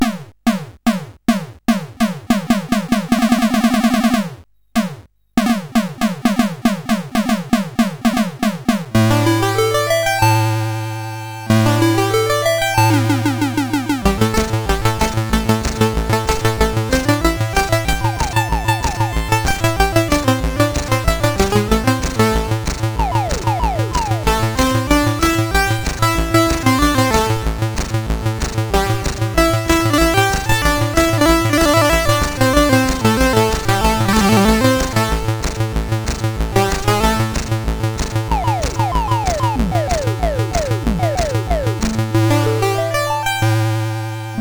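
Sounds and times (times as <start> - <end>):
chiptune game music on a CSG8580R5 sound chip: 0.0 - 44.3.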